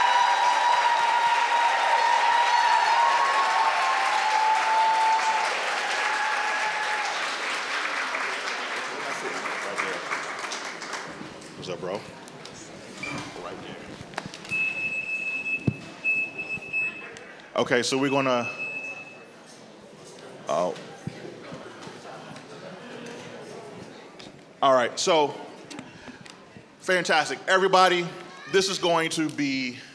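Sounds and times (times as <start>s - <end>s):
large audience applauding: 0.0s - 12.2s
crowd murmur: 8.9s - 17.6s, 18.4s - 24.6s
speech: 11.8s - 12.2s, 17.6s - 18.6s, 25.0s - 25.4s, 26.9s - 29.9s.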